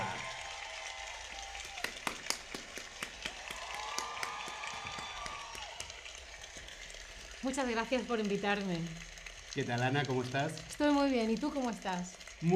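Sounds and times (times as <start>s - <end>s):
faint cheering: 0.0s - 6.6s
audience applause: 0.0s - 12.5s
speech: 7.4s - 12.5s.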